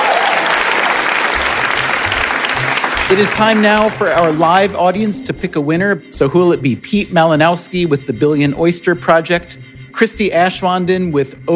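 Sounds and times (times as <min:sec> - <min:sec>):
live audience applauding the guests of an evening show: 0:00.0 - 0:04.8
speech: 0:03.1 - 0:11.5.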